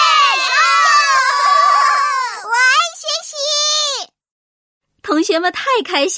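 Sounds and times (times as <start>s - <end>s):
group of children cheering: 0.0s - 3.8s
speech: 5.3s - 6.1s.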